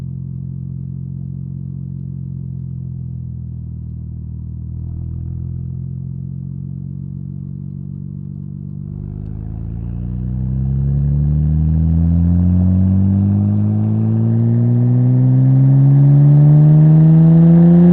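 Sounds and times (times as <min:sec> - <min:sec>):
Nissan R33 Skyline exhaust on ramps during drive: 0:08.7 - 0:17.9.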